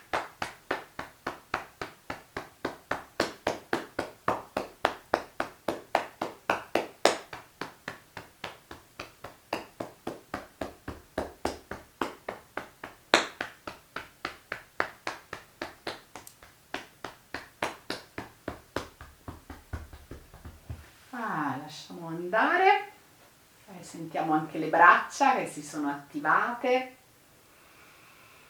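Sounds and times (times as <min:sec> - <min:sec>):
right fist tapping along the left arm: 0:00.0 - 0:20.9
speech: 0:21.7 - 0:22.8, 0:23.9 - 0:27.0.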